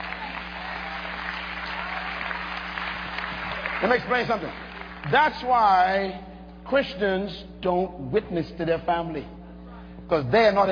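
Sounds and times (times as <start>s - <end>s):
church congregation clapping during a sermon: 0.0s - 5.6s
speech: 3.8s - 9.4s, 10.0s - 10.7s.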